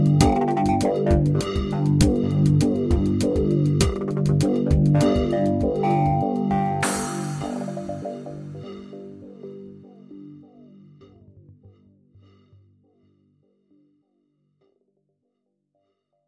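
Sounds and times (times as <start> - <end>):
instrumental music: 0.0 - 10.2.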